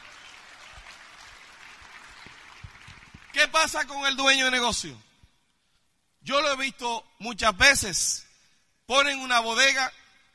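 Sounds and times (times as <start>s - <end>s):
audience applause: 0.0s - 3.8s
speech: 3.4s - 5.1s, 6.2s - 8.2s, 8.9s - 10.0s.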